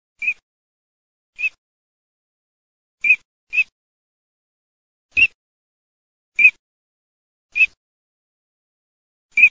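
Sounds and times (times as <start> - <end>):
teal calling: 0.2 - 0.4, 1.4 - 1.6, 6.4 - 6.6, 7.5 - 7.8.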